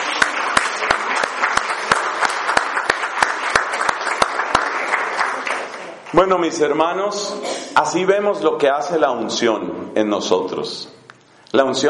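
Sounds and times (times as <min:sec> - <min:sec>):
audience applause: 0:00.0 - 0:06.5
speech: 0:06.1 - 0:11.8.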